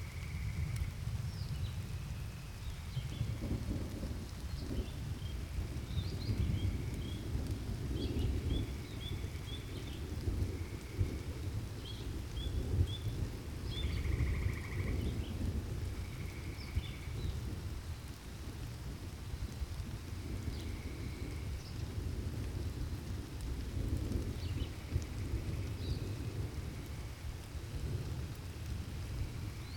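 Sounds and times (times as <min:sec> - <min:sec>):
thunderstorm: 0:00.0 - 0:29.7.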